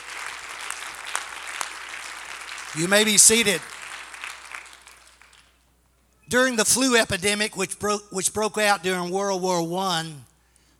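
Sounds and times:
crowd clapping: 0.0s - 5.7s
speech: 2.8s - 3.8s, 6.3s - 10.3s.

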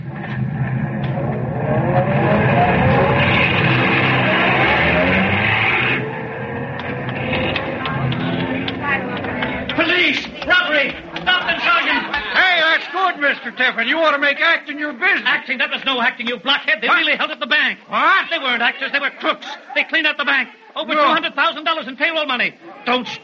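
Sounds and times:
getaway car engine revving as it accelerates away: 0.0s - 12.1s
laughter: 2.1s - 15.0s, 18.6s - 21.2s
speech: 13.8s - 23.2s.

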